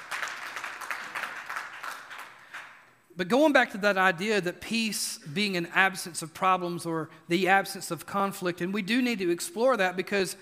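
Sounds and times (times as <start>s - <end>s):
audience clapping: 0.0s - 3.0s
speech: 3.2s - 10.3s.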